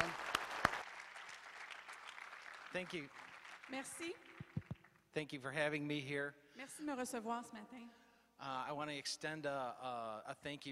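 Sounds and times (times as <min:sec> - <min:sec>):
audience applauding: 0:00.0 - 0:05.0
speech: 0:02.7 - 0:04.4, 0:05.2 - 0:10.6.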